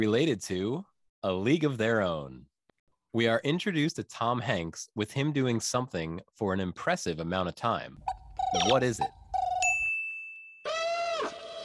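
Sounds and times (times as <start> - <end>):
speech: 0.0 - 2.5, 3.1 - 9.2
loud buzzy electronic tone sliding down in pitch: 8.4 - 9.5
bright quiz bell ding: 8.4 - 10.6.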